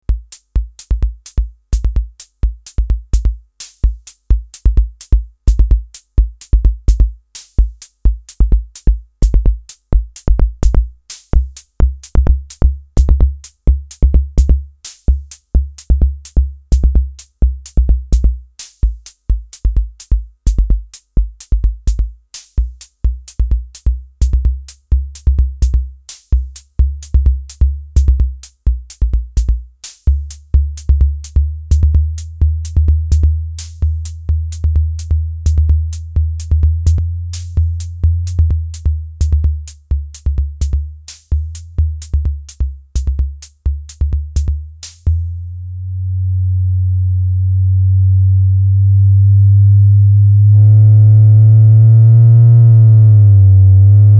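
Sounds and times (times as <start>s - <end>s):
AVP MAD-5 bass drum: 0.0s - 54.1s.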